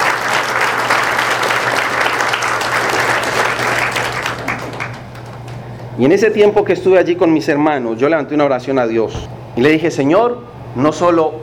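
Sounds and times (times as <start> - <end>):
loud audience applause: 0.0 - 5.6
speech: 6.0 - 11.4.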